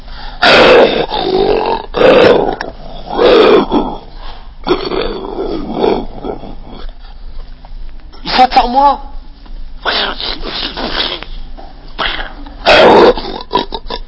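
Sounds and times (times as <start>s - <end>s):
person imitating a bear's growl: 0.4s - 6.9s, 12.0s - 14.0s
speech: 8.8s - 9.1s.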